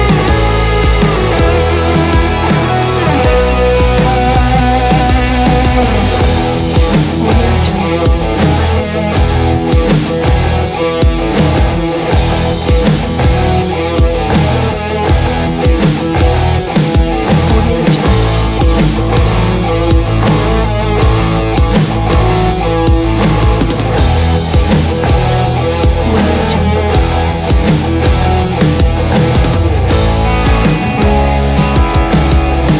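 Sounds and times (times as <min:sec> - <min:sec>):
guitar riffs: 0:00.0 - 0:32.7.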